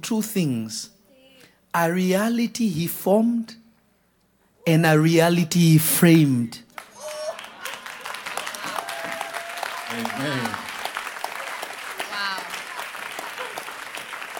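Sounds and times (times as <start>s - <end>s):
speech: 0.0s - 1.0s, 1.7s - 3.6s, 4.6s - 6.7s, 10.1s - 10.6s
audience clapping: 6.7s - 14.3s.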